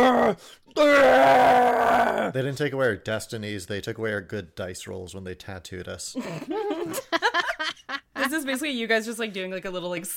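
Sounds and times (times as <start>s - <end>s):
voice imitating a warrior's angry yell: 0.0s - 2.4s
speech: 0.3s - 7.5s, 8.3s - 10.1s.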